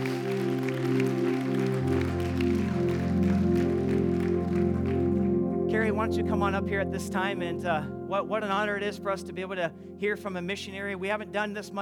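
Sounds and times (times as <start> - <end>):
audience applause: 0.0 - 5.4
keyboard or organ chords: 0.0 - 11.8
speech: 6.0 - 11.8.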